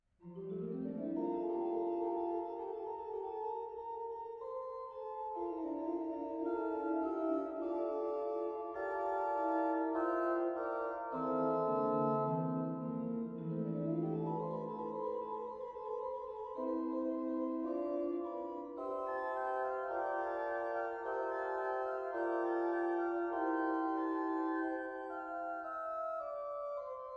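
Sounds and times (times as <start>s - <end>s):
organist playing organ music: 0.4s - 27.1s.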